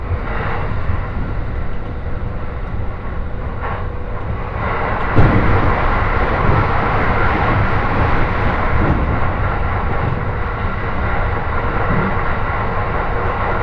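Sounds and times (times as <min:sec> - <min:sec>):
Joban Line local train rumbling and rattling between Ishioka and Toride: 0:00.0 - 0:13.6.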